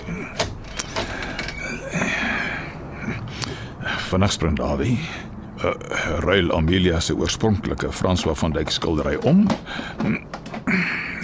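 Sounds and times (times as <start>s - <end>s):
connecting door mechanism knocks and clicks: 0.0s - 1.6s
connecting door between hotel rooms 303 and 304 creaking open: 0.0s - 2.0s, 9.0s - 11.2s
speech: 4.1s - 11.0s.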